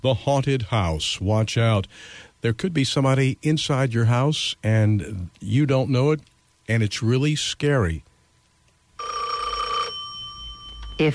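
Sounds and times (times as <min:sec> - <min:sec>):
speech: 0:00.0 - 0:08.1, 0:11.0 - 0:11.1
faint low hum: 0:00.0 - 0:11.1
telephone bell ringing: 0:09.0 - 0:11.1.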